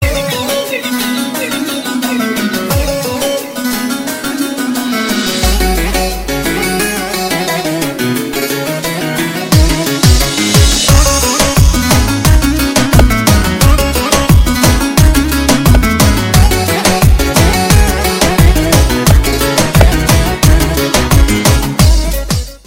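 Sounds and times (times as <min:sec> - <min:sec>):
Romanian music: 0:00.0 - 0:22.6.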